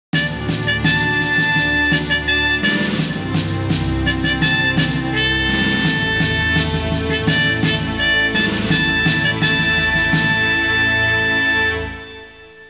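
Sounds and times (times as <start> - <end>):
symphonic music: 0.2 - 12.6.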